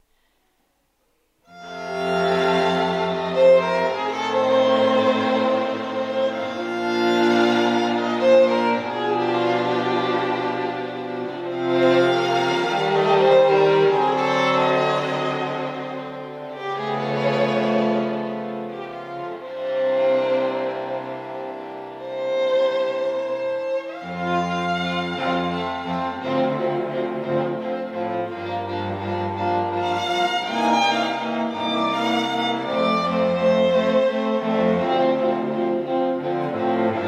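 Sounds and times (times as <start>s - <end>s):
string ensemble: 1.5s - 37.0s.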